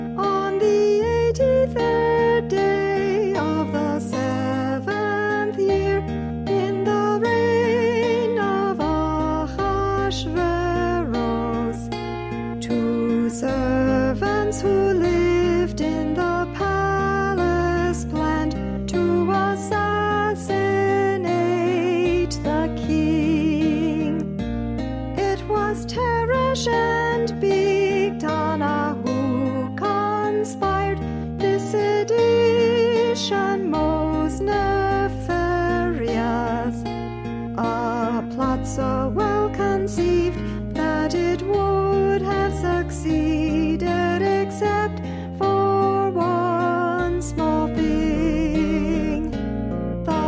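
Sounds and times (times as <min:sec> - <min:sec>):
alto singing for an audition: 0:00.2 - 0:50.2.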